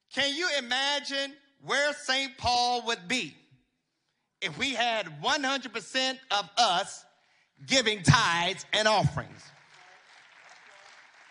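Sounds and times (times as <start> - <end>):
speech: 0.2 - 3.4, 4.4 - 9.6
crowd clapping: 9.2 - 11.2.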